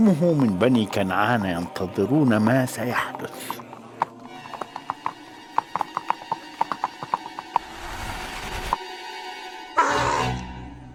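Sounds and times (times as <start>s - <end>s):
speech: 0.0s - 3.6s
hooves of a ridden donkey clip-clopping: 0.0s - 7.7s.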